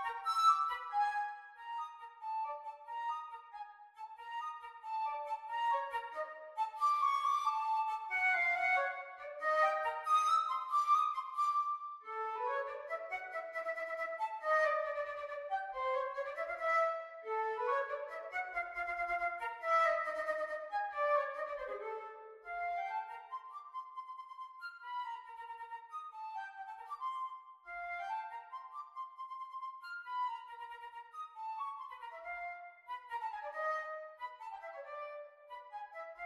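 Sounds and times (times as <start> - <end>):
flute: 0.0 - 36.2.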